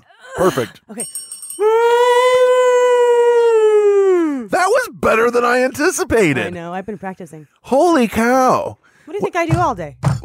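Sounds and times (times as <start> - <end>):
speech: 0.4 - 1.3, 5.0 - 10.2
person imitating a Bigfoot call: 1.6 - 4.5.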